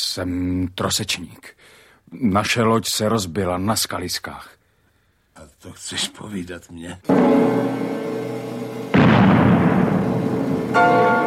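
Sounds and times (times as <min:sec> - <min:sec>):
speech: 0:00.2 - 0:04.6, 0:05.4 - 0:08.1
cannon shot: 0:07.1 - 0:11.2
quiet humming tonal background: 0:07.1 - 0:11.2.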